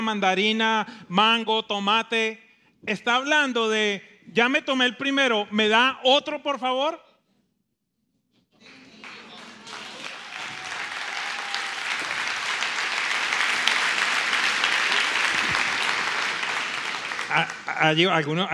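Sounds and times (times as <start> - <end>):
speech: 0.1 - 7.0, 17.3 - 18.5
audience applause: 8.6 - 18.4.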